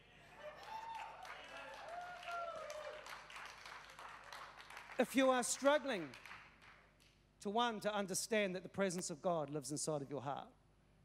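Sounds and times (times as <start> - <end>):
people clapping: 0.3 - 7.2
speech: 5.0 - 6.2, 7.4 - 10.6.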